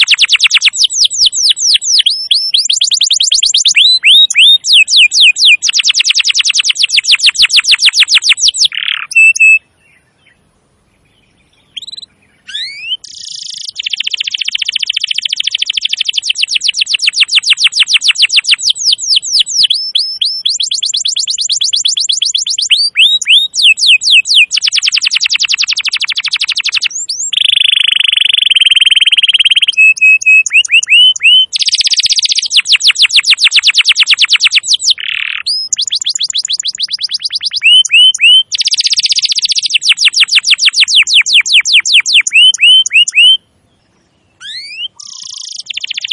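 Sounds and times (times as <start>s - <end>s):
canary song: 0.0s - 46.1s.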